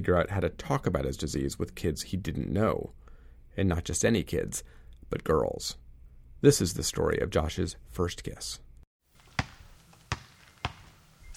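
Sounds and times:
speech: 0:00.0 - 0:03.0, 0:03.6 - 0:05.8, 0:06.4 - 0:08.6
basketball bouncing on a hard surface: 0:09.2 - 0:11.2.

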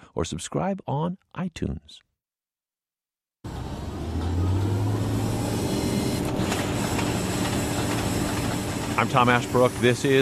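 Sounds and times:
speech: 0:00.2 - 0:02.1, 0:09.0 - 0:10.2
oil rig machinery operating in the North Dakota oil fields: 0:03.5 - 0:10.2.

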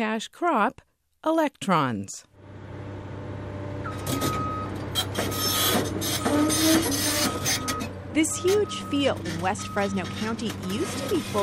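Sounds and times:
speech: 0:00.0 - 0:02.3, 0:05.2 - 0:11.4
pile driver boring steel poles into ground: 0:02.4 - 0:11.4
harsh metallic scraping of pile driver: 0:04.0 - 0:11.4.

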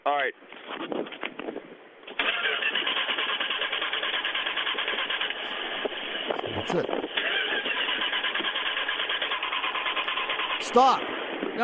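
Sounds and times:
speech: 0:00.0 - 0:01.6, 0:06.6 - 0:07.3, 0:10.7 - 0:11.6
car engine with weak spark cranked and starting: 0:02.1 - 0:11.3.

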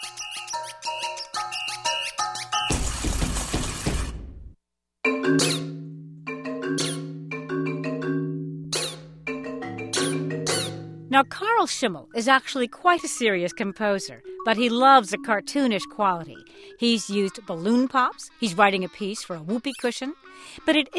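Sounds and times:
squeaky toy squeaking: 0:00.0 - 0:02.7, 0:06.8 - 0:07.1, 0:08.7 - 0:09.1, 0:09.9 - 0:10.8, 0:17.0 - 0:20.9
loud crashing, shattering noise: 0:02.7 - 0:04.4
bright plucked notes: 0:05.1 - 0:16.4
speech: 0:11.2 - 0:20.9.

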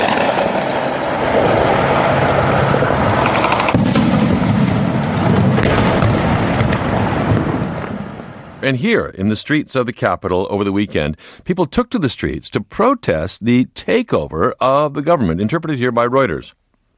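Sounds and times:
gunfire in the streets of Yemen outside the presidential palace: 0:00.0 - 0:08.1
speech: 0:08.7 - 0:16.6.

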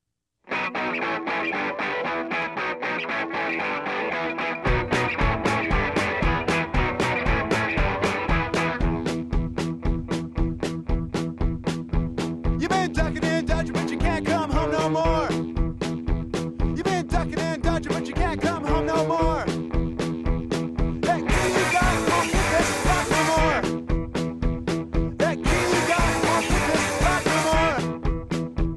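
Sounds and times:
rapidly strummed electric guitars in a punk rock song: 0:00.5 - 0:28.7
slamming drums: 0:04.3 - 0:28.7
shouted vocals: 0:21.1 - 0:23.6, 0:25.2 - 0:27.8.

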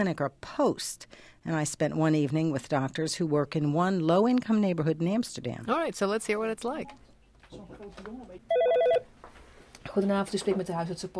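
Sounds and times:
speech: 0:00.0 - 0:09.1, 0:09.8 - 0:11.1
telephone ringing in clinic: 0:08.5 - 0:09.1.

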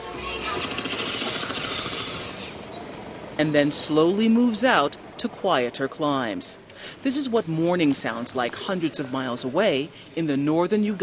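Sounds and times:
traffic engine hum in Kampala: 0:00.0 - 0:05.2
mechanical rattling and clatter of traffic: 0:00.4 - 0:02.7
speech: 0:03.4 - 0:11.0.

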